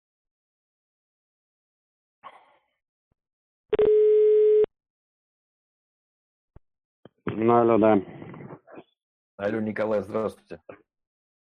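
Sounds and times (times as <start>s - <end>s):
telephone ringback tone: 3.8s - 4.7s
speech: 7.3s - 8.2s, 9.4s - 10.9s.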